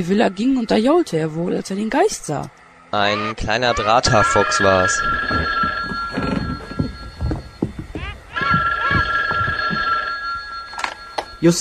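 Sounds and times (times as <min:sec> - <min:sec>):
speech: 0:00.0 - 0:06.3, 0:11.4 - 0:11.5
telephone ringing with electronic trill: 0:03.9 - 0:11.5.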